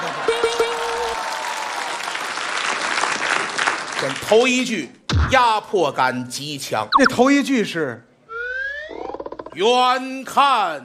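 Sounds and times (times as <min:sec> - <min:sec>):
audience applause: 0:00.0 - 0:04.2
speech: 0:04.0 - 0:08.1, 0:09.6 - 0:10.8
brief low tone: 0:07.0 - 0:07.2.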